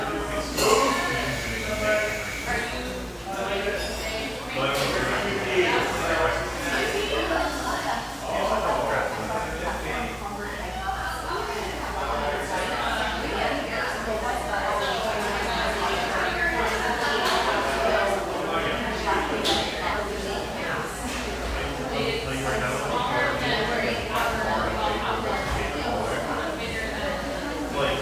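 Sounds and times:
coffeehouse chatter: 0.0 - 28.0
cups or dishes clinking: 0.4 - 3.0, 3.6 - 5.1.

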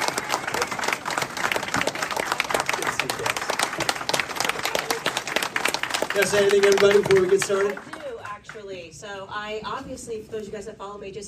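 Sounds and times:
audience applause: 0.0 - 8.3
speech: 6.2 - 7.9, 8.7 - 11.2.

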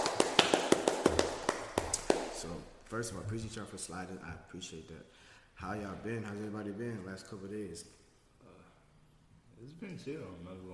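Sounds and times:
clapping: 0.0 - 2.4
speech: 2.9 - 8.0, 9.6 - 10.7.

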